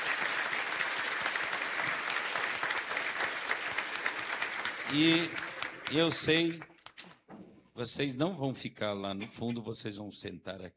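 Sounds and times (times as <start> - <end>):
audience applause: 0.0 - 6.9
speech: 4.9 - 6.7, 7.8 - 10.7.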